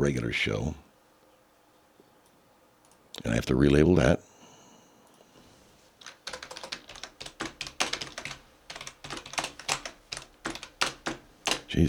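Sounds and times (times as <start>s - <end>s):
speech: 0.0s - 0.9s, 3.2s - 4.3s
hunt-and-peck typing on a computer keyboard: 6.0s - 11.8s.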